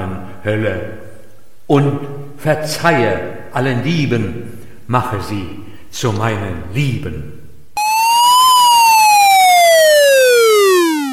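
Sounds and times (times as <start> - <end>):
speech: 0.4 - 1.1, 1.7 - 7.4
alarm siren sound effect: 7.8 - 11.1.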